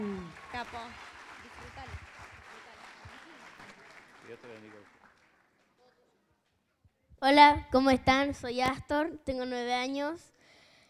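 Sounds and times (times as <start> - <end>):
crowd clapping: 0.0 - 6.6
speech: 0.6 - 1.1, 4.3 - 5.0, 7.2 - 10.3.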